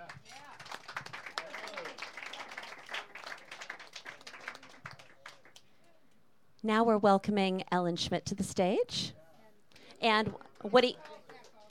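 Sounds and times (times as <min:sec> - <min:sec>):
audience applause for a performer at a live music evening: 0:00.0 - 0:05.6
speech: 0:06.6 - 0:09.2, 0:10.0 - 0:11.1.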